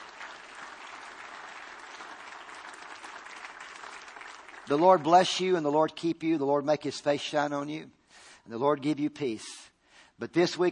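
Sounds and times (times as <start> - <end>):
large audience applause: 0.0 - 5.4
speech: 4.7 - 10.7.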